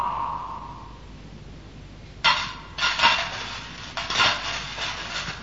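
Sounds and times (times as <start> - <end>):
gold coins clinking together: 2.3 - 5.4.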